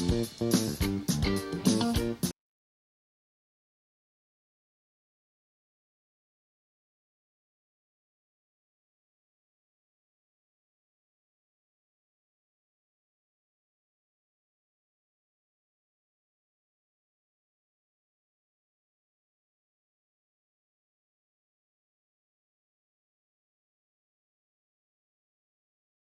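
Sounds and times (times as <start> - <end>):
bass: 0.0 - 2.4.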